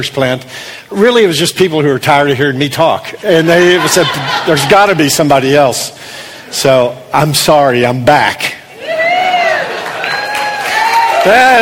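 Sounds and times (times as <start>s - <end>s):
speech: 0.0s - 8.6s, 11.2s - 11.6s
laughter: 3.3s - 5.3s
light polite applause: 9.1s - 11.6s.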